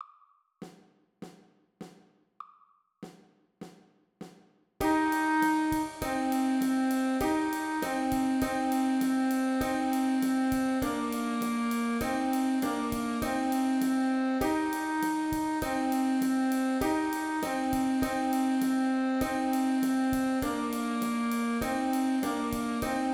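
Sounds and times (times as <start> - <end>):
Indian song on wind instruments: 4.8 - 23.1.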